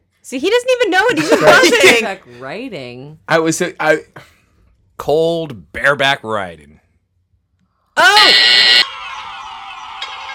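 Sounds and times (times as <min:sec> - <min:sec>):
speech: 0:00.2 - 0:04.3, 0:05.0 - 0:06.8, 0:08.0 - 0:08.8
quiz game buzzer: 0:08.2 - 0:08.9.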